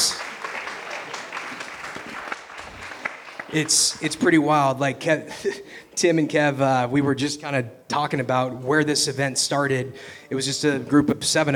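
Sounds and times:
audience applause: 0.0s - 4.2s
speech: 3.5s - 11.5s.

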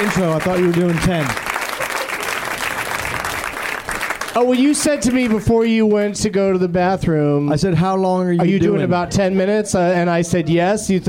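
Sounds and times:
speech: 0.0s - 1.5s, 4.4s - 11.0s
audience applause: 0.0s - 6.1s.

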